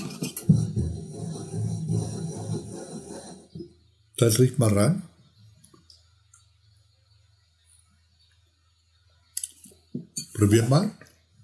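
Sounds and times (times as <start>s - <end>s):
wine glass bases grinding over wooden tabletop while swirled: 0.0s - 3.7s
speech: 4.2s - 5.1s, 10.4s - 11.1s.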